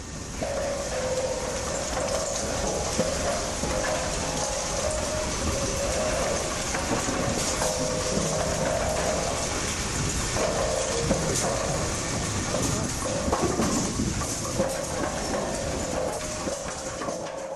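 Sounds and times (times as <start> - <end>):
about 50 pinsetter machines clattering backstage at a bowling alley: 0.0 - 17.5.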